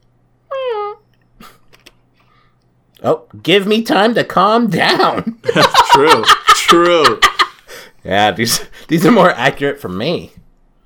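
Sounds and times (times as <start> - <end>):
person imitating cat meow: 0.5 - 1.0
speech: 3.0 - 7.3, 8.0 - 10.4
laughter: 4.9 - 7.7.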